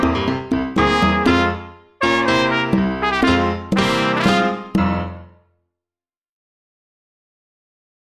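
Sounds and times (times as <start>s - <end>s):
trumpet playing Latino music: 0.0s - 5.4s.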